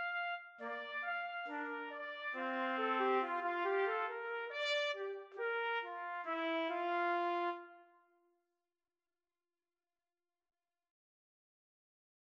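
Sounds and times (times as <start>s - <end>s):
trumpet trio: 0.0s - 7.8s.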